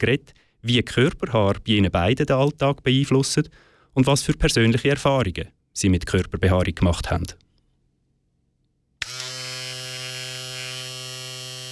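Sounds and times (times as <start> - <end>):
speech: 0.0 - 7.4
electric razor shaving: 9.0 - 11.7.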